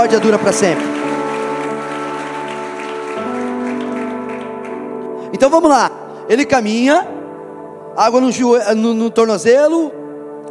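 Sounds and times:
speech: 0.0s - 1.2s, 5.3s - 7.2s, 8.0s - 10.0s
audience applause: 0.0s - 5.0s.

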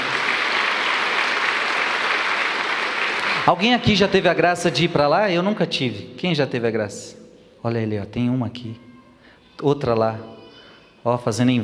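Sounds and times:
audience applause: 0.0s - 3.6s
speech: 3.4s - 8.8s, 9.6s - 10.4s, 11.0s - 11.6s.

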